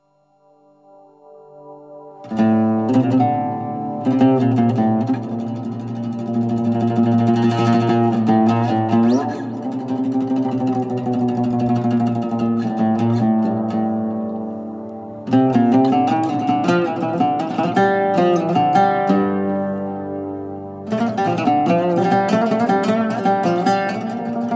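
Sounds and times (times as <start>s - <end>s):
oud: 1.3s - 24.5s.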